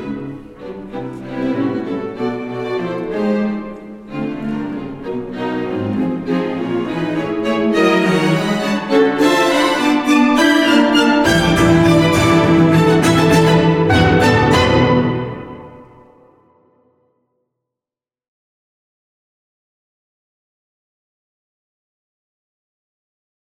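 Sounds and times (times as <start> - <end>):
string instruments in a concerto: 0.0 - 16.6
oboe in a concerto: 8.3 - 16.0
harpsichord in a concerto: 9.4 - 16.2.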